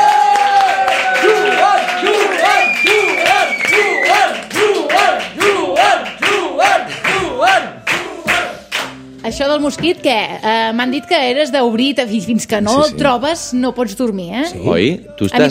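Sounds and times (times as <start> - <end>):
audience giving strong applause: 0.0 - 8.4
speech: 9.4 - 15.4.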